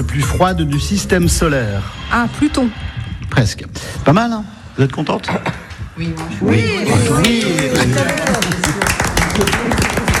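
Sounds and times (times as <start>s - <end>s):
speech: 0.0s - 9.9s
loud overlapping voices: 0.8s - 10.1s
reception team clapping for office staff: 7.1s - 10.1s.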